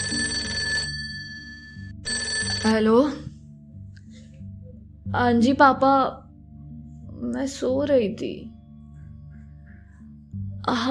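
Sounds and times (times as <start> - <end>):
telephone ringing: 0.0 - 2.9
speech: 2.6 - 3.3, 5.1 - 6.2, 7.2 - 8.6, 10.6 - 10.8.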